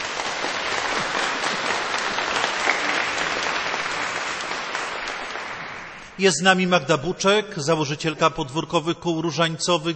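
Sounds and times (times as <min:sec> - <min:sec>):
audience applause: 0:00.0 - 0:06.2
speech: 0:06.2 - 0:09.9.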